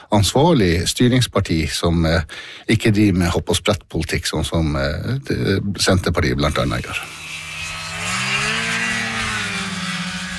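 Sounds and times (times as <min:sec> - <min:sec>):
speech: 0:00.1 - 0:07.2
snowmobile engine revving: 0:06.5 - 0:10.3.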